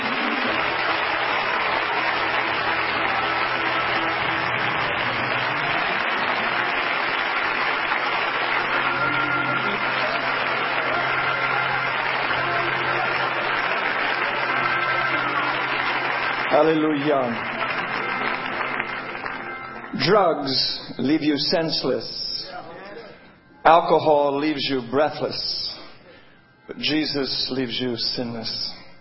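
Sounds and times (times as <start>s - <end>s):
audience clapping: 0.0s - 20.4s
speech: 16.6s - 17.6s, 20.0s - 22.6s, 23.7s - 25.6s, 26.7s - 28.7s.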